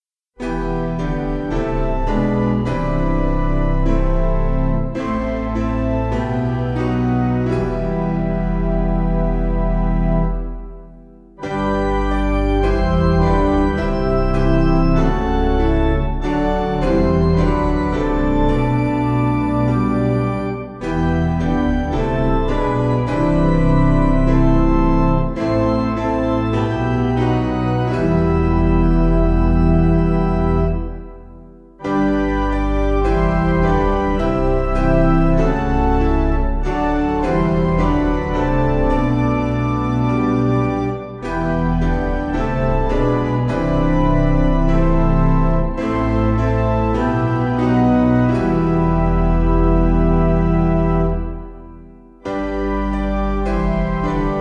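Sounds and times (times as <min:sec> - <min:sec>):
piano: 0:00.3 - 0:54.3.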